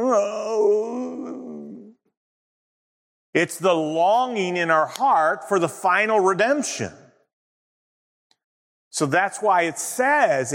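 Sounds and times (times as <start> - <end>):
voice imitating a groan: 0.0 - 2.0
speech: 0.1 - 0.4, 3.4 - 7.0, 9.0 - 10.5.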